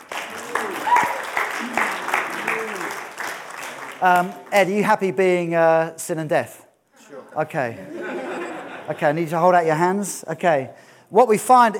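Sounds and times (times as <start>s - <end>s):
audience applause: 0.0s - 4.5s
person whooping: 0.3s - 3.0s
speech: 4.0s - 6.6s, 7.4s - 8.0s, 8.9s - 11.7s
laughter: 7.1s - 9.2s.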